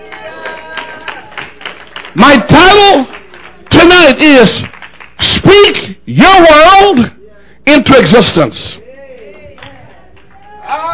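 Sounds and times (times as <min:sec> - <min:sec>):
audience clapping: 0:00.0 - 0:05.8, 0:09.1 - 0:10.9
speech: 0:04.0 - 0:04.7, 0:05.4 - 0:08.8.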